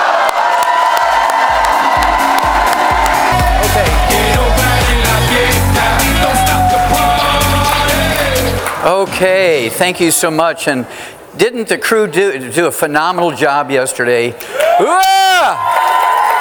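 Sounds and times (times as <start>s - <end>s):
crowd cheering and whooping: 0.0s - 7.9s, 14.6s - 16.3s
large crowd shouting hoo-ah in unison: 0.0s - 8.6s
speech: 8.8s - 15.8s.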